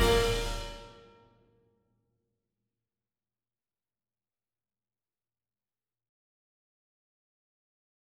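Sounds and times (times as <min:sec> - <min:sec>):
click track percussion: 0:00.0 - 0:00.9
piano: 0:00.0 - 0:01.2.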